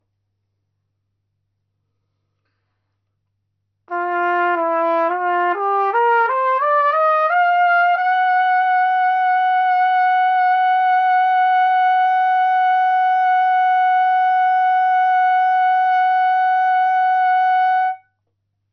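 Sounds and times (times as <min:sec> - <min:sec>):
trumpet: 0:03.9 - 0:18.1.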